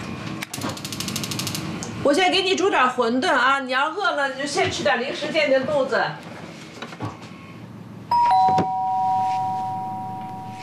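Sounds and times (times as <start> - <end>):
speech: 2.0 - 6.3
doorbell two-note chime: 8.1 - 10.6.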